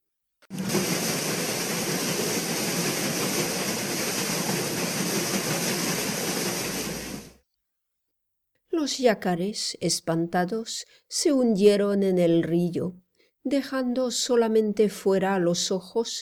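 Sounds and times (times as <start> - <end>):
steamboat paddles splashing in water: 0.5 - 7.4
speech: 8.8 - 16.2.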